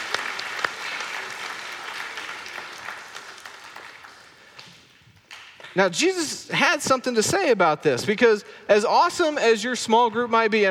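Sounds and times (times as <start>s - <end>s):
audience round of applause: 0.0s - 4.7s
speech: 5.8s - 10.7s.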